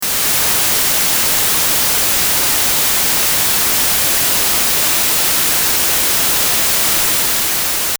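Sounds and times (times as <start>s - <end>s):
white noise: 0.0s - 7.9s.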